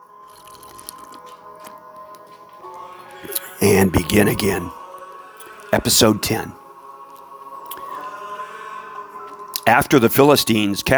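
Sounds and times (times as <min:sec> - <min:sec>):
person sipping a drink: 0:00.2 - 0:02.3, 0:03.0 - 0:06.5, 0:07.1 - 0:09.7
speech: 0:03.2 - 0:04.8, 0:05.7 - 0:06.6, 0:09.7 - 0:10.9.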